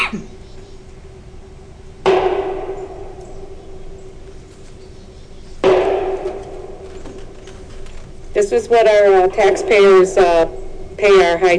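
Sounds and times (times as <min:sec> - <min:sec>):
steady low hum: 0:00.0 - 0:11.5
speech: 0:00.1 - 0:00.4, 0:08.4 - 0:11.5
distant gunshots from a gun club: 0:02.0 - 0:04.4, 0:05.6 - 0:07.7.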